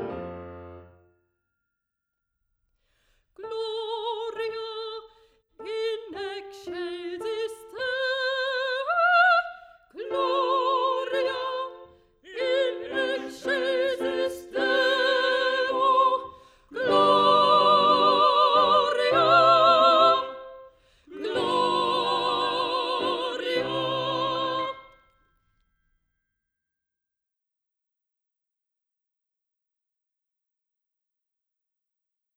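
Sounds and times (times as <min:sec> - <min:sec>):
soprano singing: 0:03.4 - 0:25.0.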